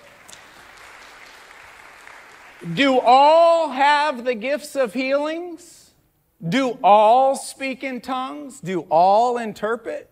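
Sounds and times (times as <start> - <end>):
church audience applauding: 0.0 - 2.8
speech: 2.6 - 5.8, 6.4 - 10.1.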